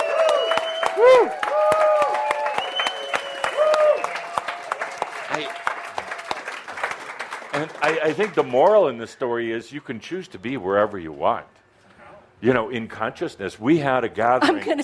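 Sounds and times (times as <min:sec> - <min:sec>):
audience at a live gathering cheering with woo calls: 0:00.0 - 0:04.8
clapping: 0:00.0 - 0:08.9
speech: 0:01.0 - 0:01.5, 0:08.0 - 0:11.6, 0:12.4 - 0:14.8.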